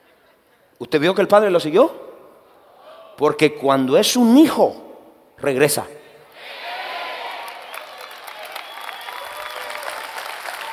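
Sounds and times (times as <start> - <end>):
speech: 0.8 - 2.0, 3.2 - 4.8, 5.4 - 6.0
audience applauding: 7.0 - 10.7.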